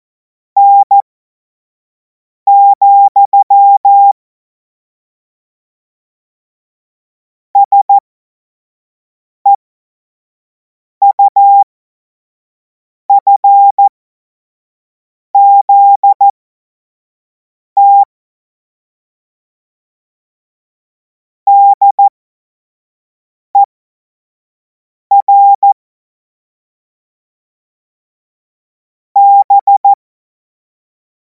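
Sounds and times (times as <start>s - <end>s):
CW Morse code beeps: 0.6s - 1.0s, 2.5s - 4.2s, 7.6s - 8.0s, 11.0s - 11.6s, 13.2s - 13.9s, 15.4s - 16.3s, 17.8s - 18.1s, 21.5s - 22.1s, 25.1s - 25.8s, 29.2s - 30.0s.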